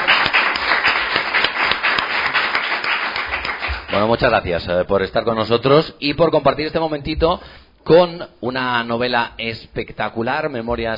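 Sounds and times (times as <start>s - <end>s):
audience applause: 0.0s - 4.1s
speech: 3.9s - 10.9s.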